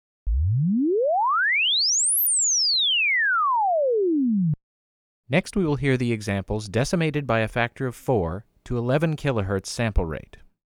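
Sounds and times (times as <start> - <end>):
swept sine wave test tone: 0.3 - 4.6
speech: 5.3 - 10.4.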